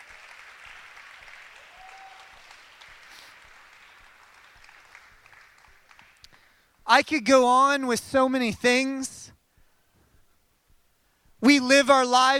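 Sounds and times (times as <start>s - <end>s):
round of applause: 0.0s - 6.6s
speech: 6.9s - 9.1s, 11.7s - 12.3s.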